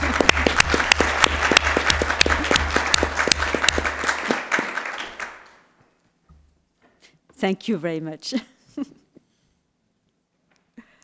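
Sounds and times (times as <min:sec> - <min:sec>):
audience applause: 0:00.0 - 0:05.6
speech: 0:07.4 - 0:08.9.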